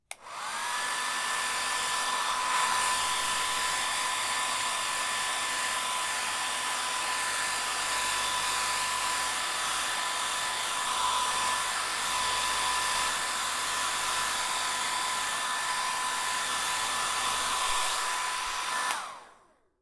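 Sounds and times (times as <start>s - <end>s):
hairdryer: 0.0s - 19.8s.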